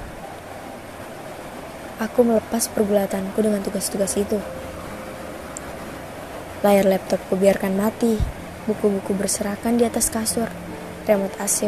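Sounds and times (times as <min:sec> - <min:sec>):
rain falling outside: 0:00.0 - 0:11.6
speech: 0:02.0 - 0:04.8, 0:06.6 - 0:11.6.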